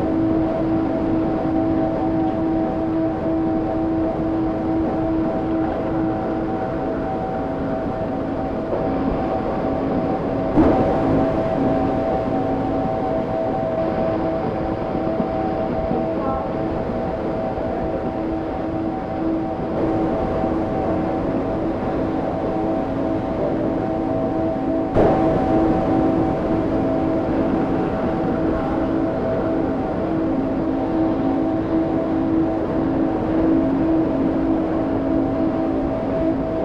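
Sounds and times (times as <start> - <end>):
ambient noise tones: 0.0 - 36.6.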